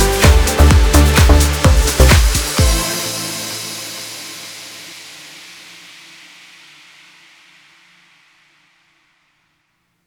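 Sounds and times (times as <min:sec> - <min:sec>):
electronic house techno music: 0:00.0 - 0:05.2.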